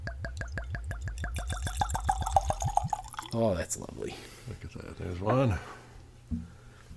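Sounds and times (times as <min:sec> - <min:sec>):
wine pouring from a bottle into a glass: 0:00.2 - 0:03.4
speech: 0:03.3 - 0:06.5.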